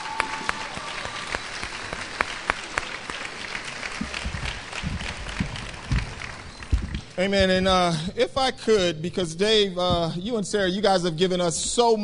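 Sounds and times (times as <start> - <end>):
crowd applauding in a large room: 0.0 - 7.2
speech: 7.2 - 12.0.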